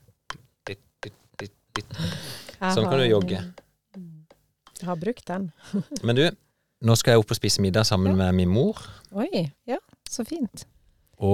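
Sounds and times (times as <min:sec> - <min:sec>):
speech: 0:00.7 - 0:01.6, 0:02.6 - 0:03.6, 0:04.8 - 0:11.3
metronome ticking at 165 beats per minute: 0:01.4 - 0:04.9.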